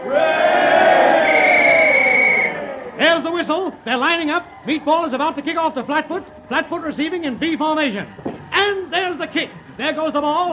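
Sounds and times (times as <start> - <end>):
restless crowd roaring at a football game: 0.0 - 3.2
speech: 3.4 - 10.5.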